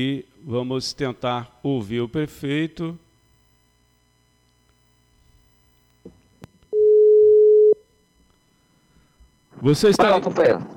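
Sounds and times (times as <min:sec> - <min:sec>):
speech: 0:00.0 - 0:03.0, 0:09.6 - 0:10.7
telephone busy tone after a dropped call: 0:06.4 - 0:09.5.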